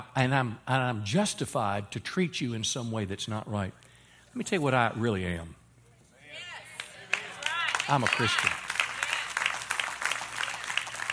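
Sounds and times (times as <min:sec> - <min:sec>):
speech: 0:00.1 - 0:05.6, 0:07.9 - 0:08.6
audience clapping: 0:06.7 - 0:11.1.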